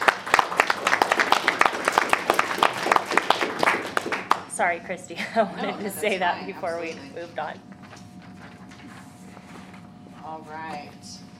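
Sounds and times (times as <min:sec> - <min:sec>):
round of applause: 0:00.0 - 0:04.5
speech: 0:04.6 - 0:07.7, 0:10.4 - 0:11.3
laughter: 0:05.2 - 0:06.8.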